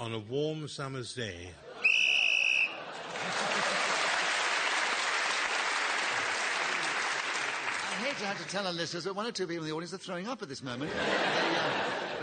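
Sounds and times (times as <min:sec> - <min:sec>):
speech: 0:00.0 - 0:01.7, 0:08.0 - 0:12.2
laughter: 0:01.6 - 0:04.4, 0:10.8 - 0:12.2
shrill whistle marking end of a round in a panel word game: 0:01.8 - 0:02.8
audience applause: 0:02.4 - 0:08.6.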